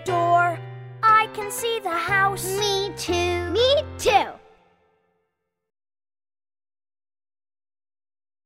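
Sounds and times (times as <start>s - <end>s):
outdoor song: 0.0s - 5.3s.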